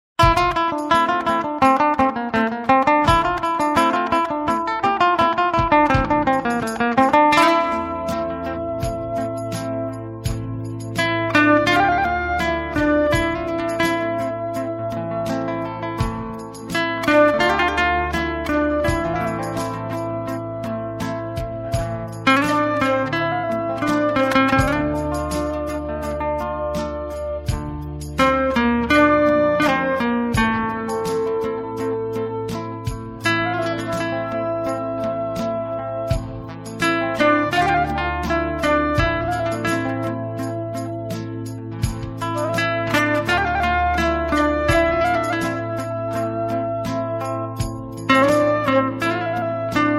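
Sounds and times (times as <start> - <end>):
guitar: 0.2 - 49.9.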